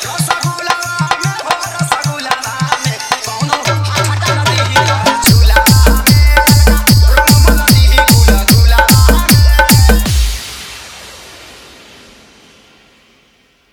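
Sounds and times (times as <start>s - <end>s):
Holi Bhojpuri song: 0.0s - 10.4s.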